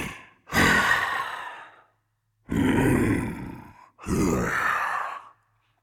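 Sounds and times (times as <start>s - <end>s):
breathing: 0.1s - 2.1s, 3.6s - 5.8s.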